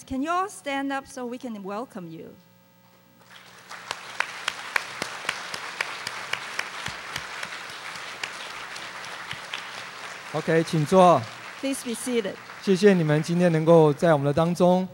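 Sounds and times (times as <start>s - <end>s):
speech: 0.1s - 2.5s, 10.3s - 14.9s
church congregation clapping to welcome newcomers at a worship service: 3.2s - 14.8s.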